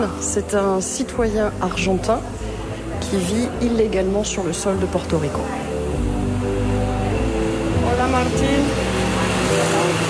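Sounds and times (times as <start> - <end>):
speech: 0.0 - 5.6, 8.2 - 8.8
electric fan running: 4.5 - 10.0.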